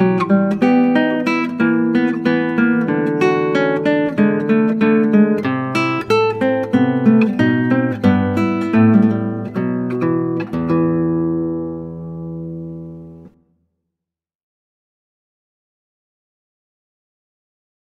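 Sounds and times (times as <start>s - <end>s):
classical guitar: 0.0s - 13.6s.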